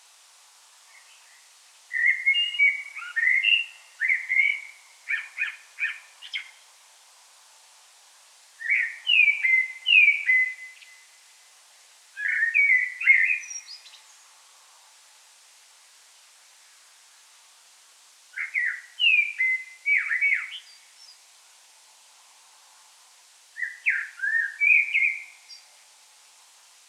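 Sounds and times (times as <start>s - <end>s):
common blackbird whistling song: 0.9s - 6.6s, 8.6s - 11.1s, 12.2s - 14.0s, 18.3s - 21.2s, 23.6s - 25.7s.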